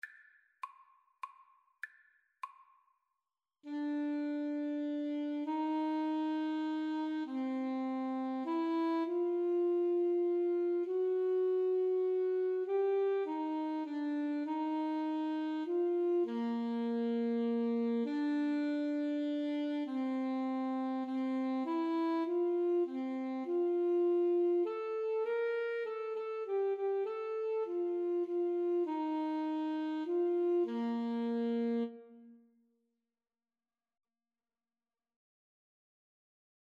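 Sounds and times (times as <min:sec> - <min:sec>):
clarinet: 0:03.6 - 0:32.6
saxophone: 0:03.6 - 0:32.6.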